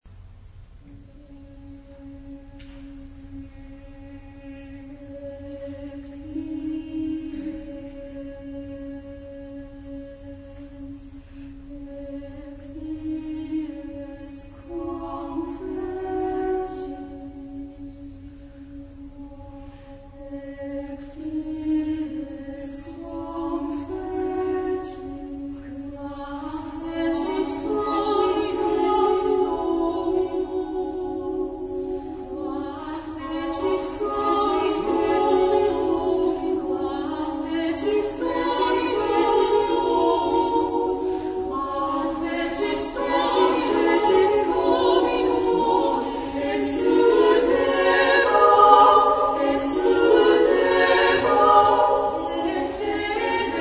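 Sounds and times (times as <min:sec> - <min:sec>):
choir singing: 0:00.9 - 0:53.6.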